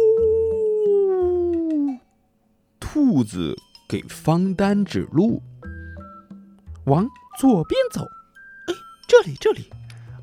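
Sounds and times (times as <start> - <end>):
voice imitating a lion's roar: 0.0 - 2.0
speech: 2.9 - 5.5, 6.9 - 9.8.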